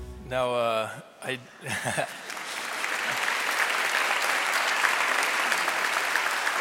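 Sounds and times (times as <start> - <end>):
speech: 0.3 - 2.2
laughter: 1.6 - 3.2
audience applause: 2.1 - 6.5.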